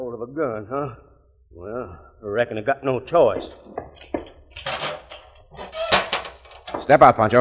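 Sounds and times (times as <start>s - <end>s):
speech: 0.2s - 4.2s, 6.9s - 7.4s
cage door being unlocked and opened: 3.4s - 7.0s.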